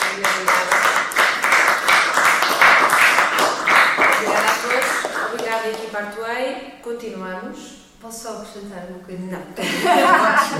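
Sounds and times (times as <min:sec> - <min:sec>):
audience applause: 0:00.0 - 0:05.8
speech: 0:06.8 - 0:10.5
laughter: 0:09.6 - 0:10.5.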